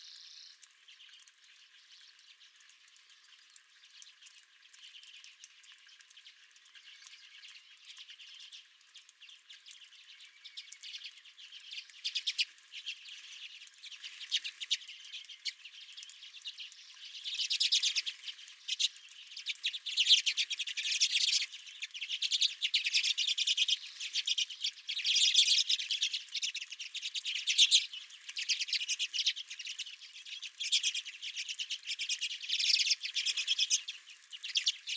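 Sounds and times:
redpolls chattering: 0.0s - 34.9s.

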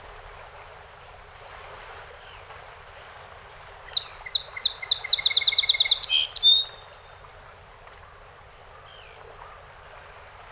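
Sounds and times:
song sparrow singing: 3.9s - 7.1s.

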